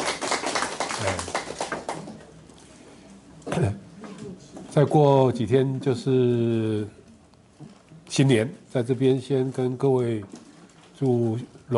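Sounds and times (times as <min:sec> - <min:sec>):
group clapping welcoming new students: 0:00.0 - 0:02.4
speech: 0:01.0 - 0:01.4, 0:03.6 - 0:03.8, 0:04.8 - 0:07.0, 0:08.2 - 0:10.4, 0:11.0 - 0:11.7.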